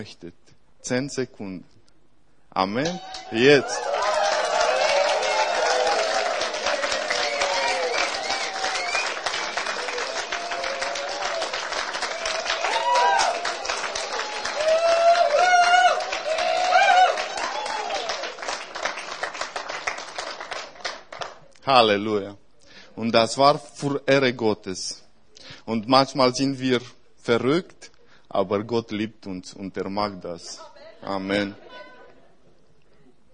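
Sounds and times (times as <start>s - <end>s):
speech: 0.0s - 1.8s, 2.6s - 3.9s, 21.7s - 22.4s, 23.0s - 25.0s, 25.7s - 31.6s
audience clapping and cheering: 2.8s - 21.6s.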